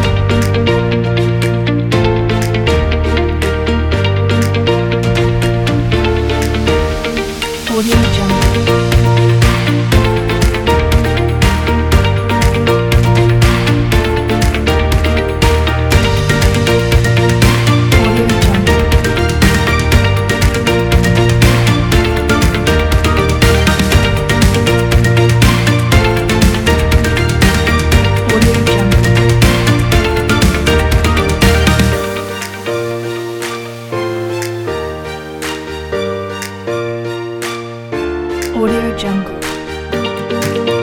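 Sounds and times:
uplifting inspirational corporate music: 0.0 - 40.8.

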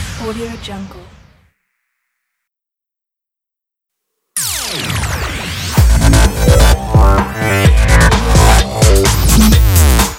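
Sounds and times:
modern electronic logo jingle: 4.4 - 10.0.

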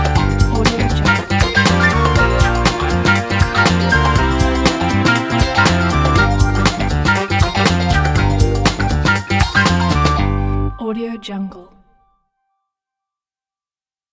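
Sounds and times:
advertising funk music: 0.0 - 10.9.

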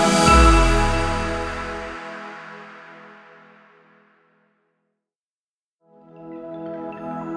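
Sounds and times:
logo reveal sound: 0.1 - 2.2.

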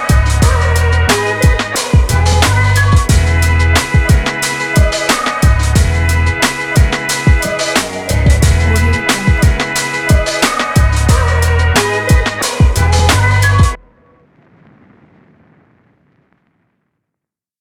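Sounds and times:
hip hop vlog music: 0.0 - 13.8.

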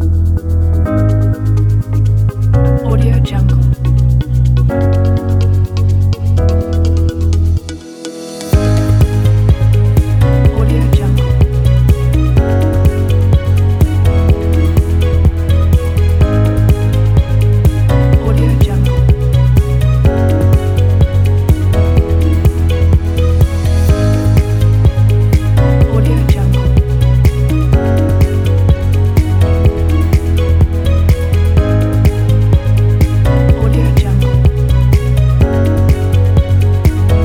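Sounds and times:
ambient corporate tech music: 0.0 - 37.2.

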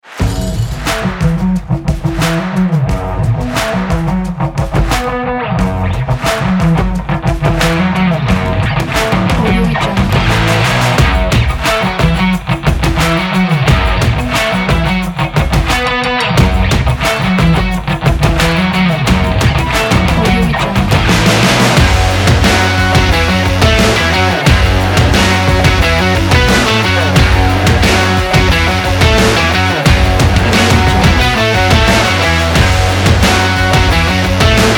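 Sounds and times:
action sport rock music: 0.0 - 34.7.

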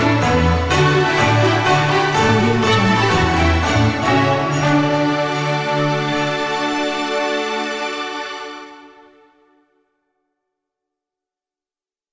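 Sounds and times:
cheerful Christmas music: 0.0 - 9.7.

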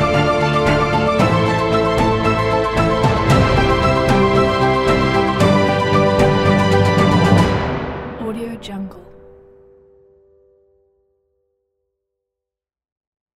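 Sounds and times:
epic adventure trailer music: 0.0 - 9.8.

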